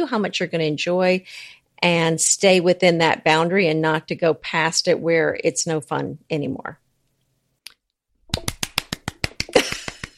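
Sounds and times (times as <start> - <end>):
speech: 0.0 - 6.8
hands clapping: 8.3 - 10.1.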